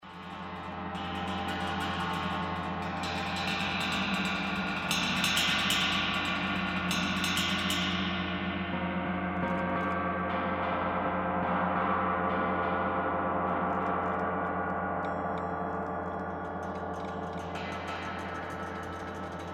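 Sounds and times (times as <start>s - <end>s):
gong: 0.0s - 19.5s.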